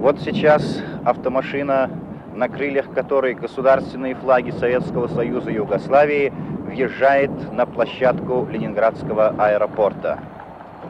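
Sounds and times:
speech: 0:00.1 - 0:10.3
crowd cheering arriving guests: 0:10.0 - 0:10.8
crowd applauding arriving guests: 0:10.1 - 0:10.8.

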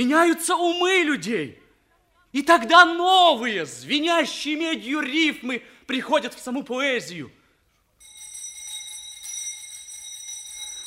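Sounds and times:
speech: 0:00.0 - 0:01.6, 0:02.3 - 0:07.4
electric school bell ringing to signal a break: 0:08.0 - 0:10.8.

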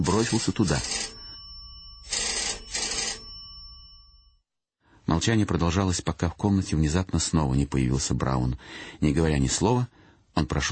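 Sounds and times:
speech: 0:00.0 - 0:01.2, 0:05.2 - 0:10.7
telephone bell ringing insistently: 0:00.0 - 0:04.4.

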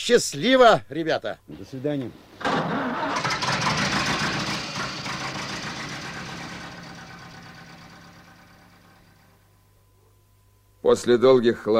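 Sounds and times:
speech: 0:00.0 - 0:03.2, 0:10.8 - 0:11.7
motor engine cranking, starting and idling roughly: 0:02.4 - 0:09.4.

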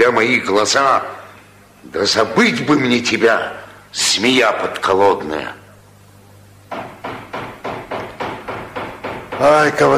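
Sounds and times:
speech: 0:00.0 - 0:01.2, 0:01.8 - 0:05.6, 0:09.4 - 0:09.9
knocking on a door: 0:06.7 - 0:09.9.

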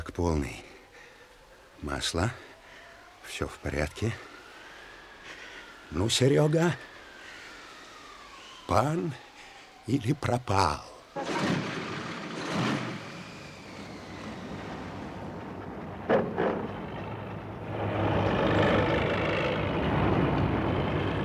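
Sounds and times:
speech: 0:00.1 - 0:00.7, 0:01.8 - 0:02.5, 0:03.2 - 0:04.3, 0:05.9 - 0:06.9, 0:08.7 - 0:09.2, 0:09.9 - 0:11.3
all-terrain vehicle engine running: 0:12.4 - 0:21.2.

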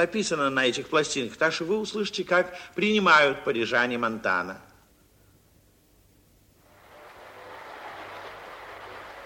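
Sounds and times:
speech: 0:00.0 - 0:04.7
concert audience applauding before show: 0:06.6 - 0:09.2.

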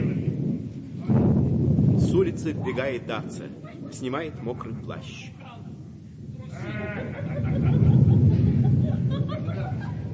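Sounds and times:
thunder rumbling: 0:00.0 - 0:10.1
speech: 0:02.2 - 0:05.4
laughter: 0:03.5 - 0:04.8, 0:06.4 - 0:10.1
short wavering bleat-like cry: 0:06.5 - 0:07.3.

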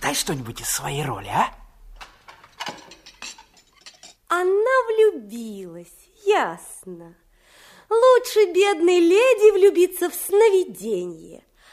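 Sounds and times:
speech: 0:00.1 - 0:01.6, 0:04.3 - 0:07.2, 0:07.9 - 0:11.5
dishes and cutlery being washed: 0:02.0 - 0:04.3.

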